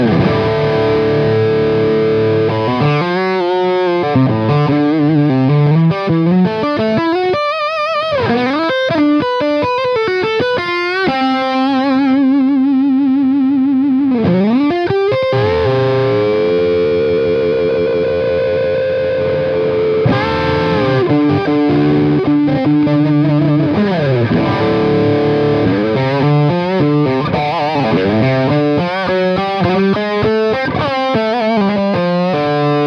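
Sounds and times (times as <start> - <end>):
distorted vintage electric guitar playing wailing lead lines: 0.0 - 32.8.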